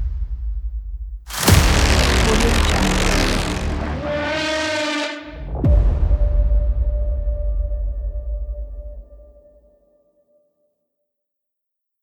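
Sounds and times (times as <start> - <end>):
aggressive action trailer music: 0.0 - 9.3.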